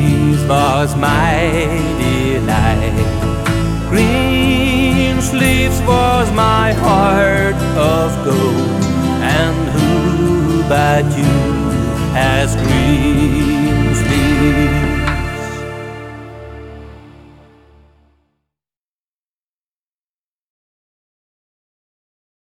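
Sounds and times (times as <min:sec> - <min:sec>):
ukulele melody: 0:00.0 - 0:17.6.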